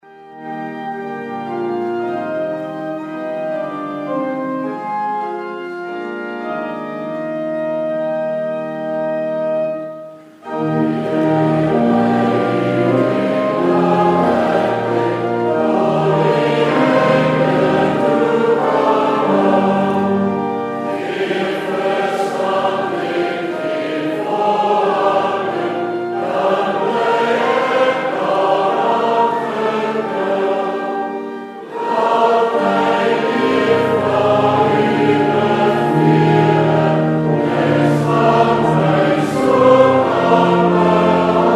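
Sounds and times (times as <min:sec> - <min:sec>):
congregation singing: 0:00.0 - 0:41.5.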